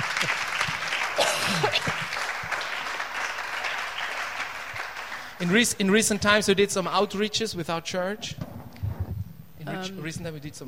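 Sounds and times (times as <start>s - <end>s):
audience applauding: 0.0s - 6.2s
speech: 0.2s - 0.4s, 1.7s - 2.2s, 5.4s - 8.5s, 9.7s - 10.6s.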